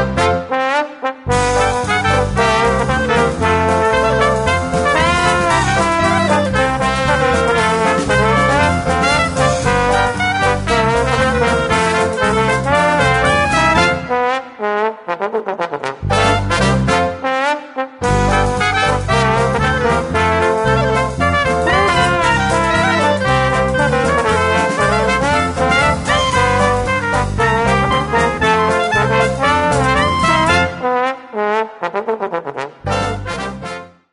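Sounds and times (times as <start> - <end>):
trombone playing creole music: 0.0 - 34.1.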